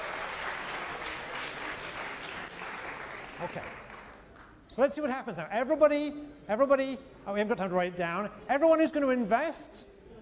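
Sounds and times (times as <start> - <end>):
audience round of applause: 0.0 - 4.4
speech: 3.4 - 3.9, 4.7 - 10.0.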